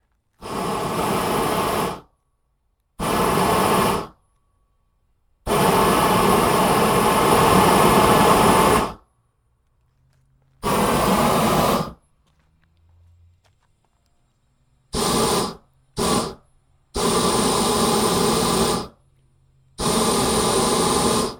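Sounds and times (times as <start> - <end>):
flamethrower at varying power: 0.4 - 2.1, 3.0 - 4.2, 5.4 - 9.0, 10.6 - 12.0, 14.9 - 19.0, 19.8 - 21.3.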